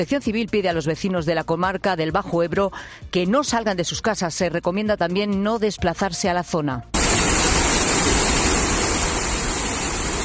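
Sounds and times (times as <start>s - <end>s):
speech: 0.0s - 7.4s
heavy rain downpour in Vinaroz, Castellón: 7.0s - 10.2s.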